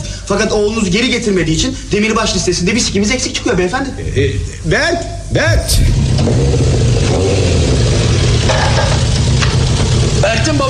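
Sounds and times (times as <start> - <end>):
speech: 0.3 - 7.1, 10.4 - 10.6
motorcycle engine revving: 5.8 - 10.6.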